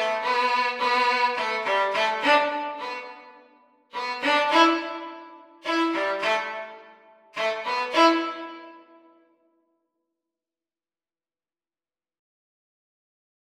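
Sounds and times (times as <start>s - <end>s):
violin duet playing a reel at practice speed: 0.0s - 3.4s, 4.0s - 8.8s.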